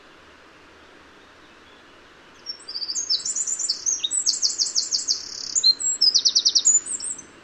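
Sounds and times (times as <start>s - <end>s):
Eurasian wren singing tinkling notes and buzzy trills: 2.4s - 7.3s.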